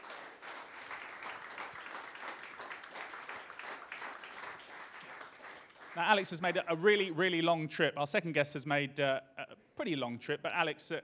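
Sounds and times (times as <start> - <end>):
audience applause: 0.0 - 7.1
speech: 6.0 - 11.0.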